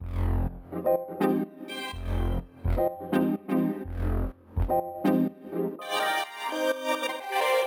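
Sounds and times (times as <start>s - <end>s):
filtered melody loop: 1.2s - 4.0s, 4.6s - 7.6s.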